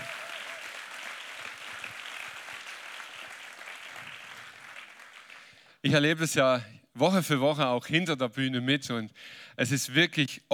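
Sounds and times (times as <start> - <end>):
audience applause for the band: 0.0 - 5.6
speech: 5.8 - 10.5.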